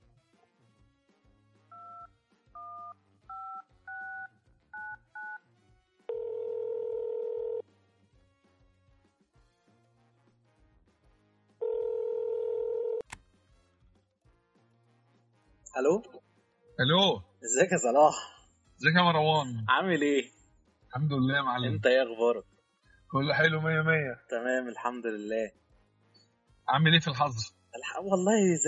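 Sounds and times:
telephone dialing tones before a call: 1.7s - 5.4s, 6.1s - 7.6s, 11.6s - 13.1s
speech: 15.8s - 16.2s, 16.8s - 22.5s, 23.1s - 25.6s, 26.7s - 28.6s.

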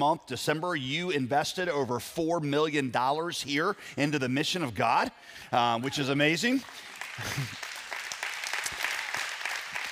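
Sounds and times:
speech: 0.0s - 7.6s
audience clapping: 5.9s - 9.8s
laughter: 7.2s - 7.6s.

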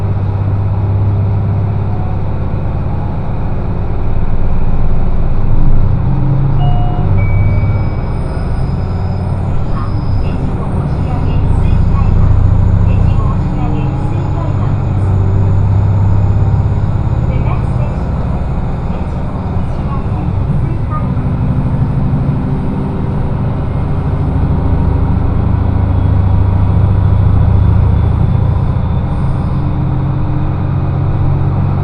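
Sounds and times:
diesel railcar rumble on the Echigo Tokimeki Railway: 0.0s - 31.8s
faint high whines and squeals: 6.4s - 30.8s
voices: 9.5s - 15.4s, 17.2s - 21.7s.

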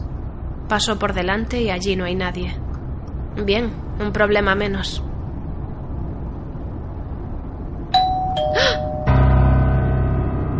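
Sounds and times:
low hum: 0.0s - 10.5s
speech: 0.7s - 2.6s, 3.4s - 5.1s
doorbell ringing with electronic chime tones: 8.0s - 9.7s.

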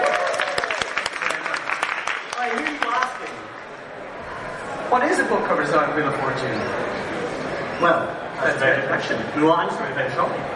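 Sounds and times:
crowd clapping: 0.0s - 3.7s
faint murmur of voices: 3.3s - 10.5s
speech: 4.9s - 7.2s, 7.8s - 10.5s.

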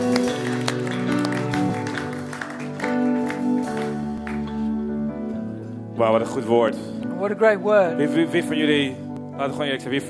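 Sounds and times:
audience applause: 0.0s - 4.7s
sustained instrumental music: 0.0s - 10.0s
speech: 6.0s - 10.0s.

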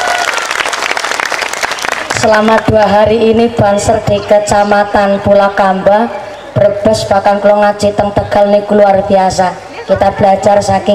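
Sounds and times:
crowd applauding: 0.0s - 2.6s
speech: 2.2s - 10.9s.

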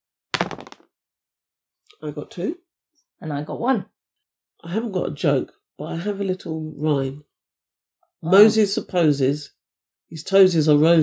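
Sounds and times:
dice being rolled: 0.4s - 0.8s
speech: 2.0s - 2.6s, 3.2s - 3.9s, 4.6s - 7.3s, 8.2s - 11.0s.

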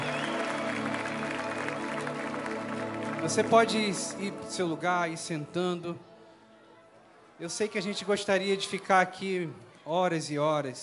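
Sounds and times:
audience applauding: 0.0s - 5.3s, 7.4s - 9.7s
speech: 3.2s - 6.1s, 7.4s - 10.8s.

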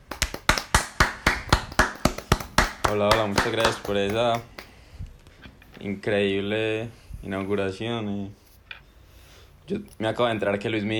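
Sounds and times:
person clapping: 0.0s - 4.8s
speech: 2.9s - 4.5s, 5.8s - 8.4s, 9.7s - 10.9s.

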